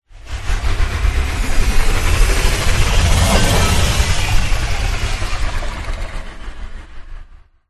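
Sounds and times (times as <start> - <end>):
sci-fi power up: 1.4 - 6.6.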